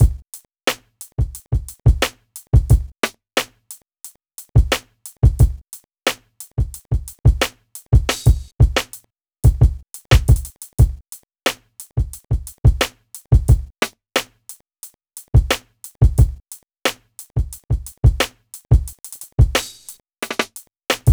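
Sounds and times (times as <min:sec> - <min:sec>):
hip hop drums: 0:00.0 - 0:03.6, 0:04.6 - 0:14.3, 0:15.4 - 0:21.1.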